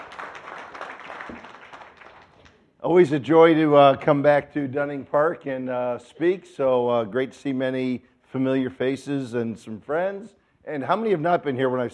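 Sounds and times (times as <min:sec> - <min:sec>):
congregation clapping at a church service in Dunning Park: 0:00.0 - 0:02.7
speech: 0:02.8 - 0:11.9.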